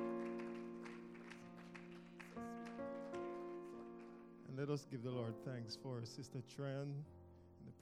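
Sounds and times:
audience clapping hands: 0.0 - 4.5
sustained keyboard chord: 0.0 - 7.8
speech: 4.6 - 7.8.

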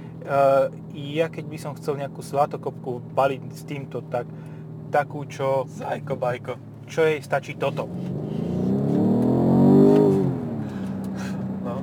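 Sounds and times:
speech: 0.3 - 8.4
car engine revving while accelerating: 5.8 - 11.8.

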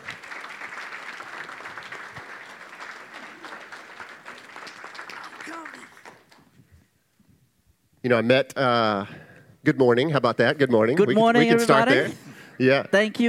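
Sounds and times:
audience applause welcoming a speaker to the stage: 0.0 - 6.5
speech: 8.0 - 13.2.

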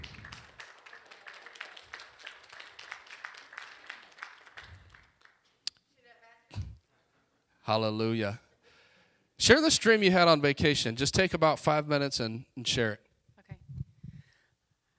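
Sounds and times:
audience applauding: 0.0 - 5.6
speech: 7.7 - 8.4, 9.5 - 13.0.

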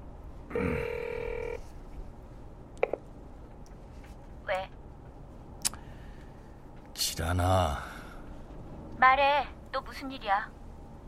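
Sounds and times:
telephone ringing: 0.6 - 1.6
speech: 7.2 - 7.9, 9.0 - 10.6.

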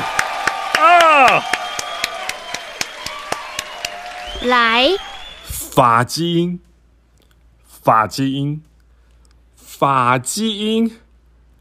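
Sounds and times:
applause: 0.0 - 5.6
speech: 4.4 - 5.1, 5.8 - 6.7, 7.8 - 8.7, 9.8 - 11.0.

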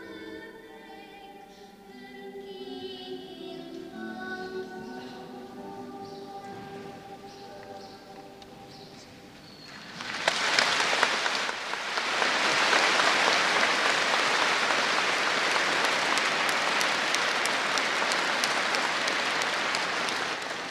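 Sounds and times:
audience applause: 9.8 - 20.7.

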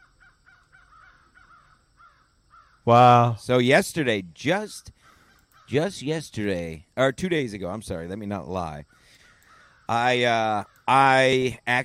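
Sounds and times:
crows cawing: 0.0 - 2.9, 4.9 - 5.8, 8.8 - 11.1
speech: 2.8 - 5.0, 5.7 - 9.0, 9.9 - 11.8.

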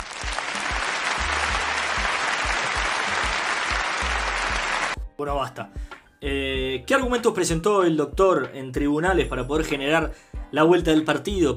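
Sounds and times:
applause: 0.0 - 5.0
speech: 5.2 - 11.5.

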